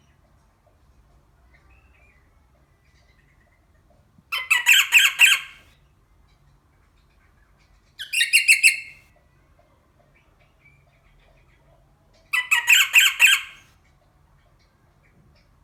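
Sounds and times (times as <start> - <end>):
rosella parrot voice: 4.3 - 5.7, 8.0 - 9.0, 12.3 - 13.7.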